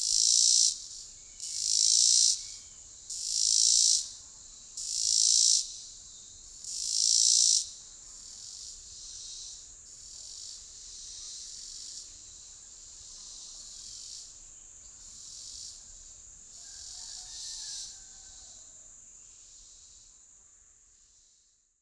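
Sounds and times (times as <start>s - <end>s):
cicada: 0.0s - 21.8s.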